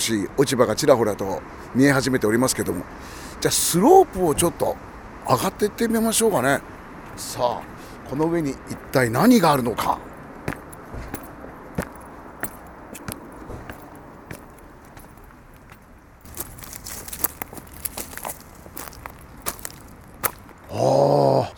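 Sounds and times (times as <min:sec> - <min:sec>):
speech: 0:00.0 - 0:10.1
footsteps on a forest path strewn with pine cones and acorns: 0:04.0 - 0:20.8.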